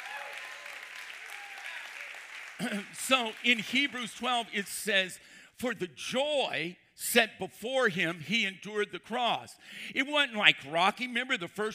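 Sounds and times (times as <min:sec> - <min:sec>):
voices cheering and calling out: 0:00.0 - 0:04.4
audience hand clapping: 0:00.0 - 0:04.9
speech: 0:02.6 - 0:11.7.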